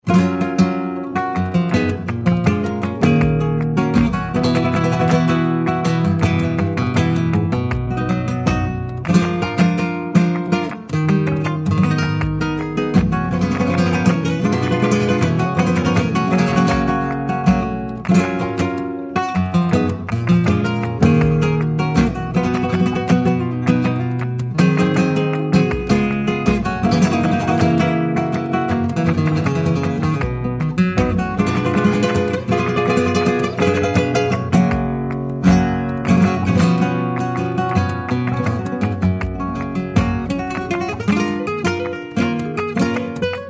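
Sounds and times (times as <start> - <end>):
flamenco guitar playing Alegrias: 0.0 - 43.4.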